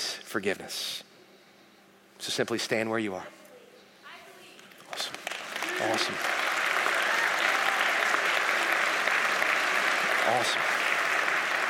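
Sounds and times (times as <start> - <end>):
speech: 0.3 - 1.1, 2.2 - 3.4, 5.8 - 6.4, 10.3 - 10.7
audience applause: 4.9 - 11.6.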